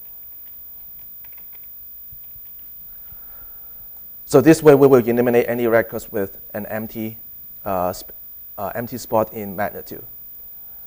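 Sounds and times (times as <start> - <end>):
typing on a computer keyboard: 0.0 - 2.8
speech: 4.3 - 10.2.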